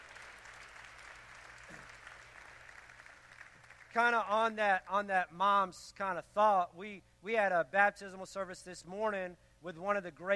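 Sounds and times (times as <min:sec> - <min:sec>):
audience applause: 0:00.0 - 0:04.0
speech: 0:03.9 - 0:10.3.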